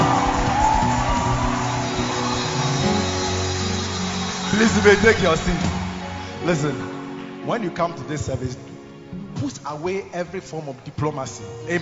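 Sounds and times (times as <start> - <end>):
audience shouting and cheering: 0.0 - 7.4
speech: 4.6 - 5.7, 6.4 - 8.6, 9.4 - 11.8.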